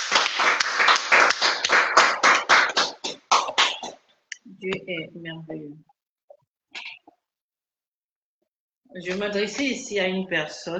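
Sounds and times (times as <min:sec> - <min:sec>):
French-speaking church congregation clapping to acclaim the Lord: 0:00.0 - 0:04.0
speech: 0:04.7 - 0:05.9, 0:08.9 - 0:10.7.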